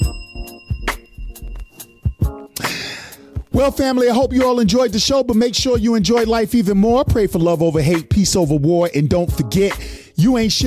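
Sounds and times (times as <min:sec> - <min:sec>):
bell ringing: 0:00.0 - 0:04.1
speech: 0:03.6 - 0:10.6.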